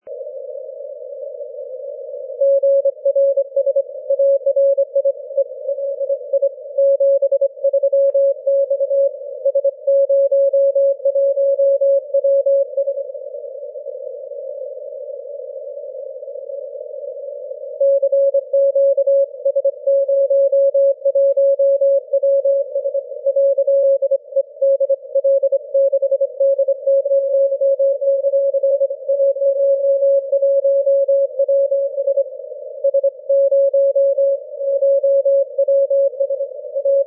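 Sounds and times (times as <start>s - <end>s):
6m continuous wave radio tone: 0.0s - 37.0s.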